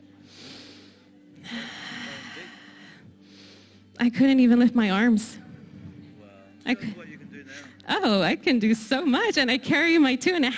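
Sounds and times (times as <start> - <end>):
deep breathing from a person who can now breathe freely: 0.1 - 4.0
speech: 4.0 - 5.4, 6.7 - 10.5.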